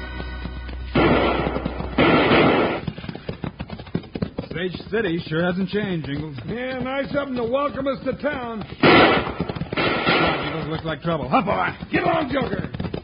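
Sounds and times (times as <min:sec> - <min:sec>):
six-gun gunfire in an Old West town: 0:00.9 - 0:03.0, 0:08.8 - 0:10.9
speech: 0:04.6 - 0:09.5, 0:10.7 - 0:12.8.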